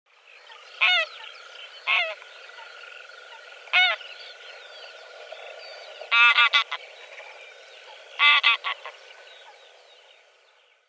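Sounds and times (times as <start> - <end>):
grey goose calling: 0.8 - 1.2, 1.8 - 2.7, 3.3 - 4.0, 6.1 - 6.8, 7.9 - 9.6.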